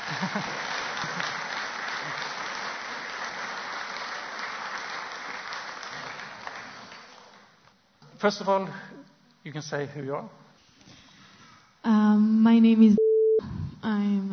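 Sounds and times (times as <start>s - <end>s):
audience applause at an organisation's meeting: 0.0s - 7.6s
speech: 0.2s - 0.6s, 8.2s - 10.4s, 11.8s - 13.0s, 13.8s - 14.3s.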